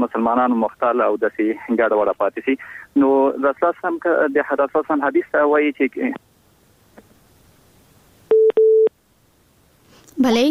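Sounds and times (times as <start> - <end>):
speech: 0.0 - 6.3, 10.2 - 10.4
telephone ringing tone on a phone-in line: 8.3 - 8.9.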